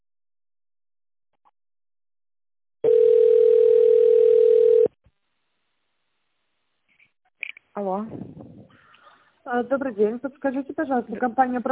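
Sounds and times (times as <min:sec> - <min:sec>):
telephone line tone while waiting for operator: 0:02.8 - 0:04.9
speech: 0:07.8 - 0:08.6, 0:09.5 - 0:11.7.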